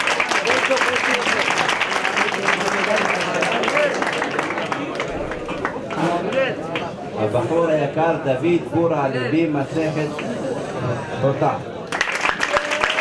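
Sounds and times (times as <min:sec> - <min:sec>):
sustained applause from a crowd: 0:00.0 - 0:07.0, 0:11.8 - 0:13.0
speech: 0:00.7 - 0:01.6, 0:07.3 - 0:11.7.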